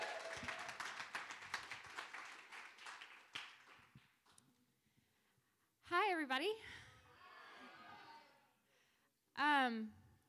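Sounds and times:
crowd clapping: 0.0s - 4.3s
speech: 6.3s - 6.8s, 9.4s - 10.0s.

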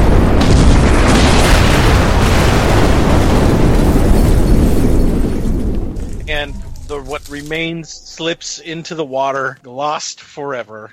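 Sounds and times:
island exploding: 0.0s - 7.9s
speech: 7.4s - 10.9s.

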